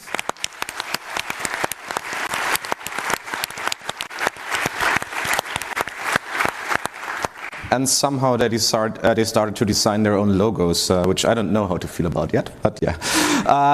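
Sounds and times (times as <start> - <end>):
loud audience applause: 0.0 - 7.9
speech: 7.7 - 13.7.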